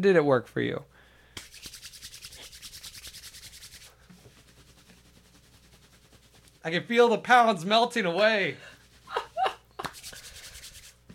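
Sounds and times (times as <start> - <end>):
speech: 0.0 - 1.7, 6.6 - 8.7
hands rubbing together: 1.4 - 6.7, 8.8 - 11.1.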